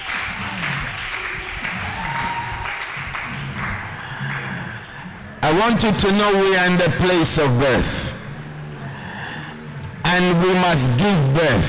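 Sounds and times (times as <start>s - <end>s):
audience clapping: 0.0s - 4.8s
speech: 5.5s - 8.0s, 10.1s - 11.6s.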